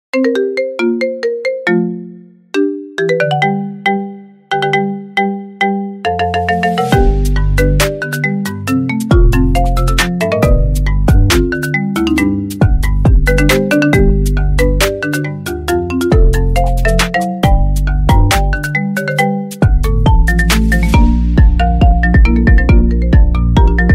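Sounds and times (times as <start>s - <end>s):
marimba: 0.1s - 23.9s.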